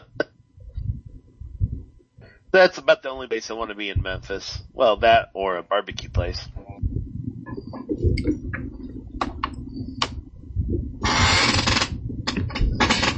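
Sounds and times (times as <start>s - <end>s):
low rumbling background: 0.0s - 13.1s
speech: 2.5s - 6.6s, 8.0s - 8.6s
chair squeaking and creaking: 11.0s - 13.1s.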